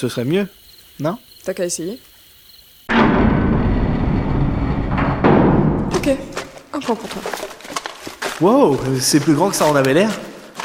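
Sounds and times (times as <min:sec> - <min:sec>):
speech: 0:00.0 - 0:02.1, 0:06.1 - 0:07.6, 0:08.4 - 0:10.6
door being kicked in: 0:02.9 - 0:06.6.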